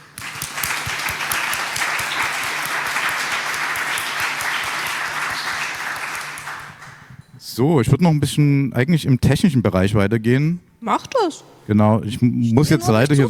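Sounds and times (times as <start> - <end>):
audience applause: 0.0 - 7.1
speech: 7.6 - 13.2.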